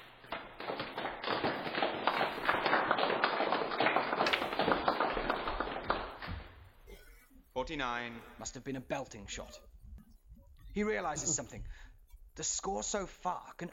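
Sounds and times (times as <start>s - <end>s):
smattering of applause: 0.0s - 6.6s
speech: 7.6s - 9.7s, 10.8s - 13.7s.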